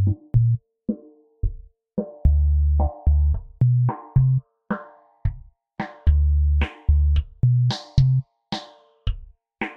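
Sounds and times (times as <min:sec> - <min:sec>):
bass: 0:00.0 - 0:00.6, 0:02.2 - 0:04.4, 0:06.0 - 0:08.2.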